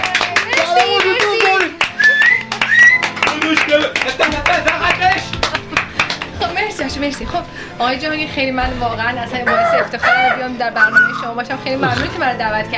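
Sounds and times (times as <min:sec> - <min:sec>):
audience applauding a radio presenter: 0:00.0 - 0:06.6
speech: 0:07.0 - 0:12.7.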